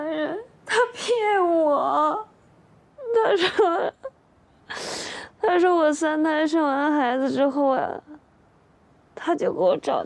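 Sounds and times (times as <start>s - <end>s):
speech: 0.2s - 2.3s, 3.3s - 4.0s, 5.5s - 8.2s, 9.2s - 10.0s
woman crying: 3.0s - 5.2s.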